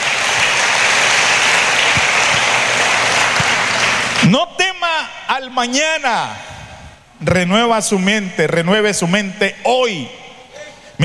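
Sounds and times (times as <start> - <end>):
audience applauding loudly: 0.0 - 4.4
speech: 4.2 - 4.5, 5.4 - 6.5, 7.2 - 10.2.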